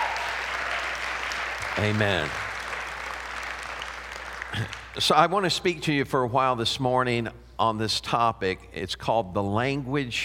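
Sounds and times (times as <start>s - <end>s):
audience clapping hands: 0.0s - 5.3s
speech: 1.8s - 2.4s, 4.5s - 10.2s.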